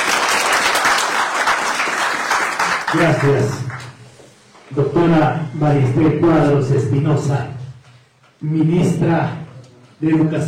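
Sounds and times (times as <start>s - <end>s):
audience applause at an education ceremony in Peru: 0.0s - 3.9s
speech: 2.9s - 3.7s, 4.7s - 7.6s, 8.4s - 9.4s, 10.0s - 10.4s.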